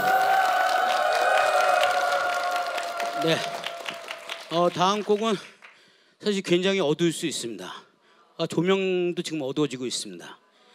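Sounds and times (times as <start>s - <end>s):
audience applause: 0.0s - 5.9s
speech: 3.2s - 3.6s, 4.5s - 5.5s, 6.2s - 7.8s, 8.4s - 10.4s.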